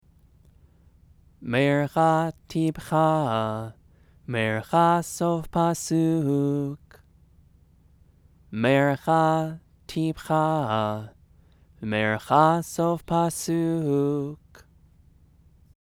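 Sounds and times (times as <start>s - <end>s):
scripture chanting: 1.4s - 7.0s, 8.5s - 11.2s, 11.8s - 14.7s.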